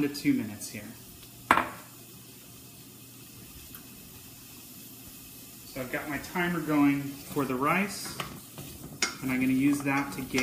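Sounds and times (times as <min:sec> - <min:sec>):
speech: 0:00.0 - 0:01.6, 0:05.8 - 0:08.6, 0:09.2 - 0:10.4
utensil clacking against a pan while stirring vegetables: 0:07.2 - 0:10.4.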